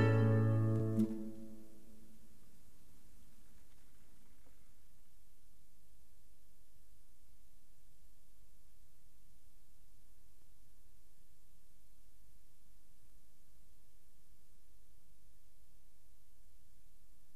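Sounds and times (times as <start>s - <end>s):
waltz played by a duo: 0.0s - 1.4s.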